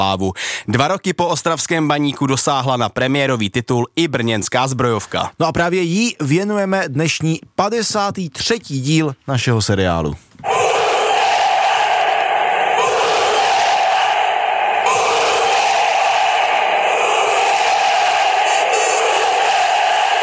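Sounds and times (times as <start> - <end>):
speech: 0.0 - 10.8
football fans' battle chant: 10.4 - 20.2.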